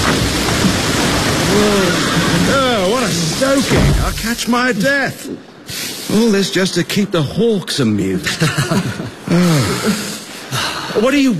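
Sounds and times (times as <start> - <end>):
low rumbling thunder: 0.0 - 4.5
heavy rain during a thunderstorm: 0.0 - 11.3
speech: 3.4 - 11.3
laughter: 8.2 - 10.3.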